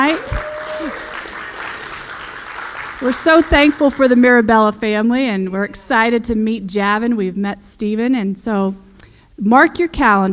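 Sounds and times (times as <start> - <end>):
audience clapping: 0.0 - 4.6
speech: 3.0 - 8.8, 9.4 - 10.3.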